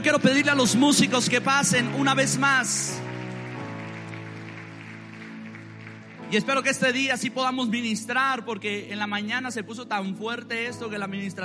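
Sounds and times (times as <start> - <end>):
speech: 0.0 - 3.2, 6.3 - 11.4
audience applause: 0.0 - 7.1.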